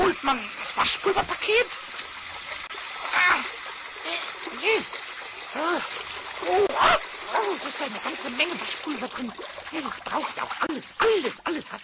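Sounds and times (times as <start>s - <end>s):
water running into a plugged sink for washing laundry by hand: 0.0s - 11.8s
speech: 0.1s - 1.9s, 4.7s - 11.8s.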